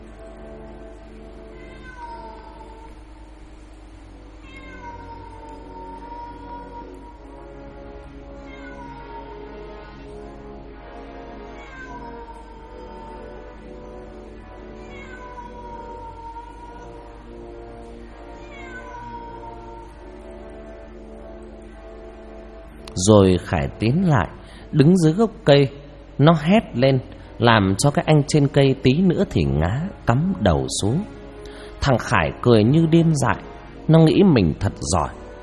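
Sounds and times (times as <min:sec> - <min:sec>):
eerie cat meowing and yowling: 0:01.5 - 0:03.0, 0:04.4 - 0:07.3, 0:08.4 - 0:09.6, 0:11.5 - 0:13.5, 0:14.7 - 0:17.2, 0:18.3 - 0:20.0
speech: 0:23.0 - 0:31.2, 0:31.8 - 0:35.2.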